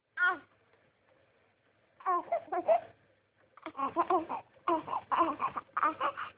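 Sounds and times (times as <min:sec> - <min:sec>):
hungry baby girl crying: 0:02.0 - 0:02.9, 0:03.6 - 0:06.3.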